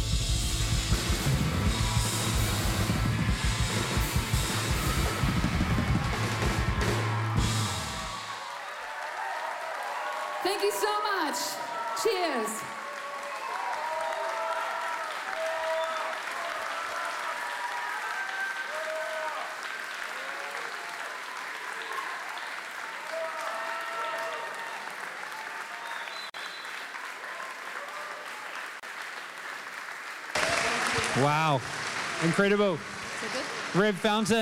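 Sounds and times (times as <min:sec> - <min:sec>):
audience applause: 0:00.6 - 0:34.3
audience cheering with whoops and voices: 0:01.4 - 0:28.6
speech: 0:10.6 - 0:12.7, 0:31.2 - 0:34.3.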